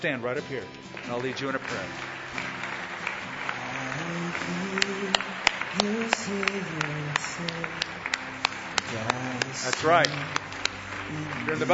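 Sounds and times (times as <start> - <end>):
speech: 0.0 - 2.6, 4.1 - 8.2, 8.9 - 10.5, 11.1 - 11.7
scattered audience applause: 0.8 - 11.7.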